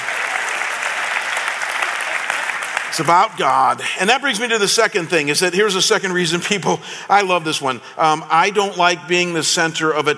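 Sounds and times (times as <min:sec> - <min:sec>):
audience applause: 0:00.0 - 0:03.8
speech: 0:03.0 - 0:10.1.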